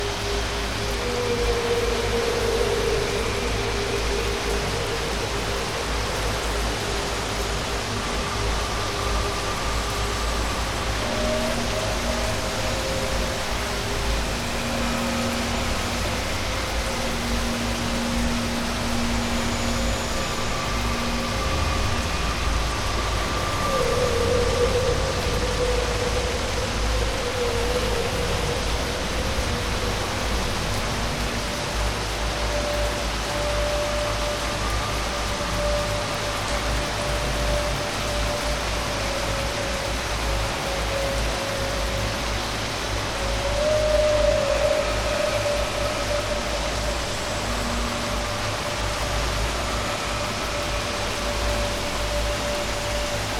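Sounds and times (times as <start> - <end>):
rain outdoors: 0.0 - 53.3.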